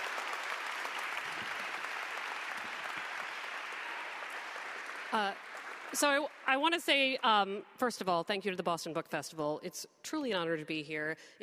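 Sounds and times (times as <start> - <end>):
audience applause: 0.0 - 6.5
speech: 5.1 - 11.4.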